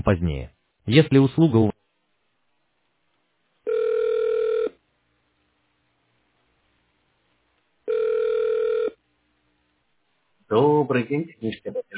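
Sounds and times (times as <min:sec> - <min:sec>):
speech: 0:00.0 - 0:01.8, 0:10.5 - 0:11.9
telephone ringback tones while call connects: 0:03.7 - 0:04.8, 0:07.9 - 0:09.0.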